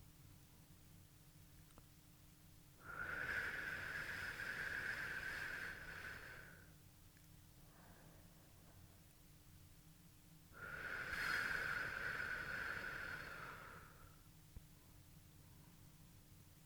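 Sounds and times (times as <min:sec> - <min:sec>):
breath blown into the ear: 0:02.8 - 0:06.7, 0:10.6 - 0:14.1.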